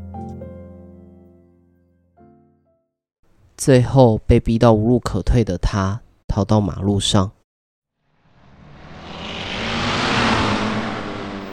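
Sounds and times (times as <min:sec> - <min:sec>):
speech: 0:03.6 - 0:07.4
speeding car on a road: 0:08.0 - 0:11.5.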